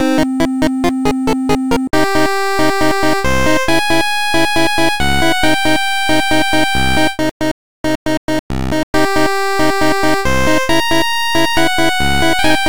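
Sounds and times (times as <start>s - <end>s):
8-bit battle music loop: 0.0s - 12.6s.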